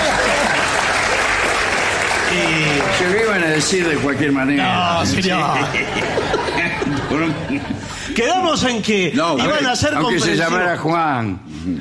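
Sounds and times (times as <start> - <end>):
laughter: 0.0 - 1.4, 2.3 - 9.9
audience applause: 0.0 - 7.0
speech: 2.3 - 11.8.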